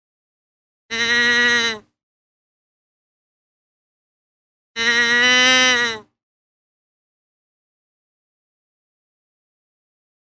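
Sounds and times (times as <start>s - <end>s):
deer giving a nasal bleat: 0.9s - 1.9s, 4.8s - 6.1s.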